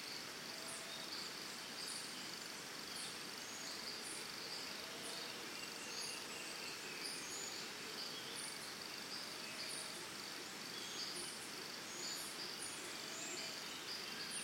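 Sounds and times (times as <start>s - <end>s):
crickets trilling in early morning forest in Costa Rica: 0.0s - 14.4s.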